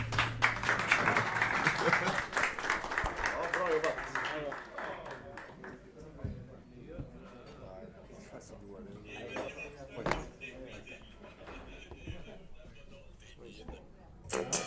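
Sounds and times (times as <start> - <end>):
audience applause: 0.0 - 5.8
laughter: 1.1 - 2.6, 9.0 - 13.4
quiet voices talking: 3.4 - 14.5.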